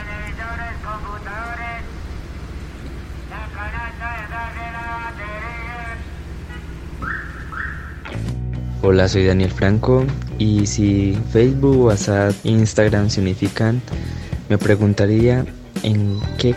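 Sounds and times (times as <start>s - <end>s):
scrap collector's truck loudspeaker sing-song call: 0.0s - 2.0s, 3.3s - 8.1s
low rumble of traffic: 0.0s - 16.5s
speech: 8.8s - 16.5s.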